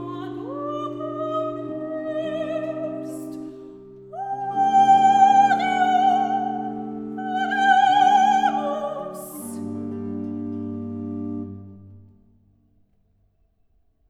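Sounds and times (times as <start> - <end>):
recitative singing: 0.0 - 10.4.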